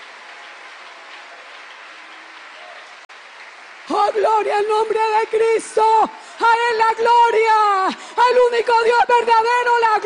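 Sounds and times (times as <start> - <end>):
audience applause: 0.0 - 6.0
speech: 3.9 - 10.0.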